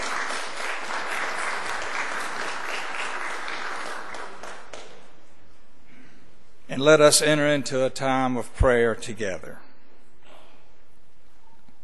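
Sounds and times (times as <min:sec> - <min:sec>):
applause: 0:00.0 - 0:05.2
speech: 0:06.8 - 0:09.6.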